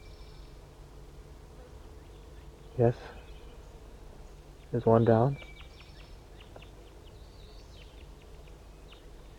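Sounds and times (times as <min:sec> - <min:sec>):
crossbills chittering in trees: 0:00.0 - 0:00.6, 0:01.7 - 0:09.3
low hiss: 0:00.0 - 0:09.3
speech: 0:02.8 - 0:03.2, 0:04.7 - 0:05.5.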